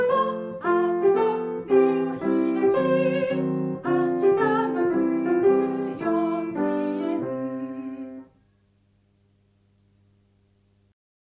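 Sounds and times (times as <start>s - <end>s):
enka song: 0.0s - 8.4s.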